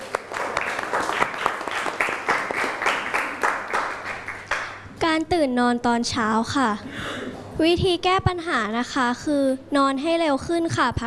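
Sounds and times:
classroom applause for presenting students: 0.0 - 4.8
speech: 5.2 - 11.0.

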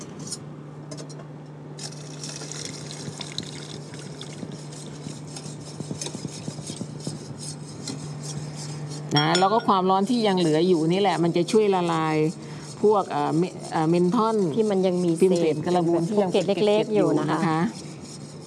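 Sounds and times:
liquid being poured into a hot pot while cooking: 1.8 - 4.9
utensils clinking on cookware: 9.1 - 10.0
speech: 9.1 - 17.8.

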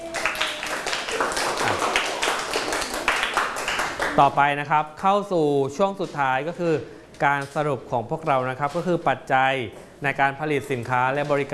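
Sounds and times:
students clapping loudly for themselves: 0.0 - 4.5
speech: 4.2 - 11.5.

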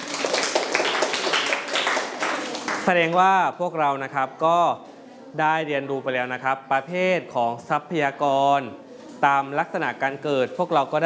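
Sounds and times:
students clapping: 0.0 - 3.2
speech: 2.9 - 11.0.

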